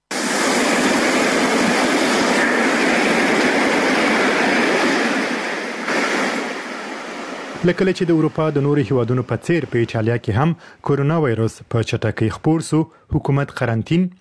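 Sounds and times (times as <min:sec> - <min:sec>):
sea waves on an empty beach in an Italian coastal city: 0:00.1 - 0:09.9
speech: 0:07.6 - 0:14.1.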